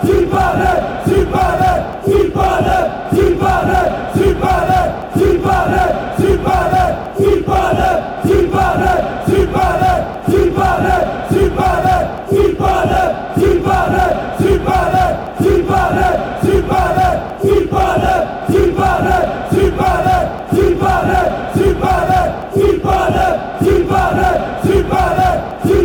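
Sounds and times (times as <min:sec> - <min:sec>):
fans chanting: 0:00.0 - 0:25.8.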